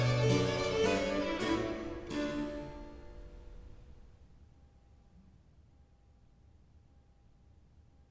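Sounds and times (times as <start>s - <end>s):
allegro gavotte sonata movement in E major: 0.0s - 4.1s.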